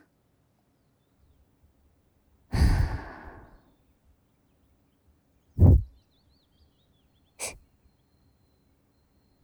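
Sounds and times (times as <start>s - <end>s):
blowing into the right ear: 2.5s - 3.5s, 5.6s - 5.9s.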